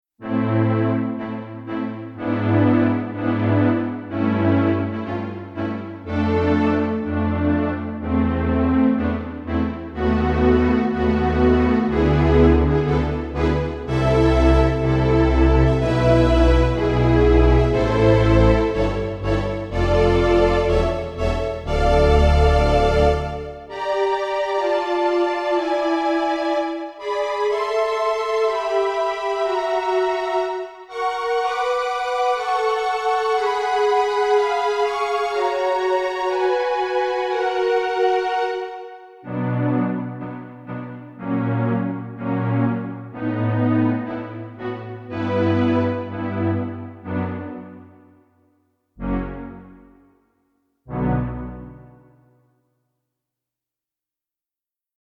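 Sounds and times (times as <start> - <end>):
strings: 0.2 - 48.1, 49.0 - 50.1, 50.9 - 52.2.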